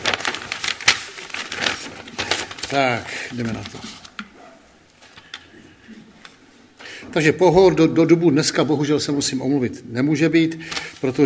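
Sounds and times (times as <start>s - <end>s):
paper being handled: 0.0s - 6.9s, 10.6s - 11.2s
speech: 2.7s - 4.0s, 7.2s - 11.2s.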